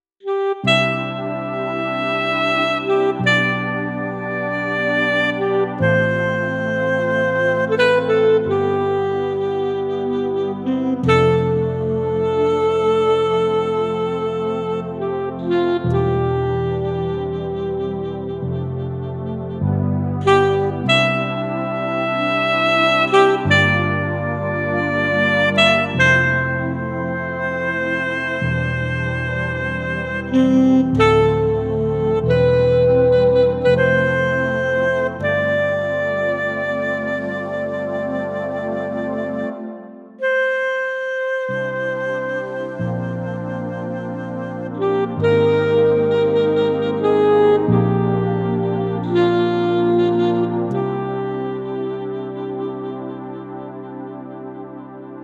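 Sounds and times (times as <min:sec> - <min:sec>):
brass instruments: 0:00.2 - 0:55.2.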